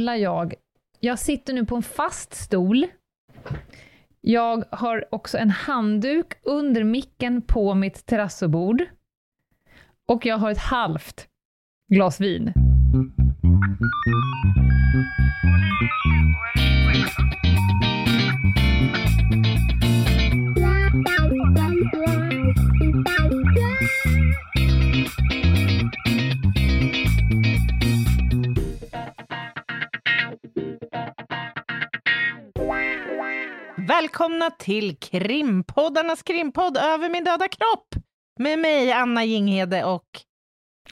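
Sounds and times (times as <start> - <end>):
speech: 0.0 - 9.0, 10.1 - 11.3, 11.9 - 16.0, 34.0 - 40.3
upbeat electronic podcast intro theme with synth over a driving beat: 12.9 - 31.6, 32.5 - 33.8.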